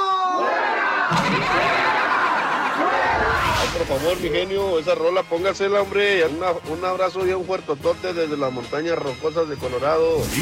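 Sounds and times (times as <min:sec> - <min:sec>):
live radio show audience cheering and laughing: 0:00.6 - 0:03.9
speech: 0:01.1 - 0:02.0, 0:02.8 - 0:10.3.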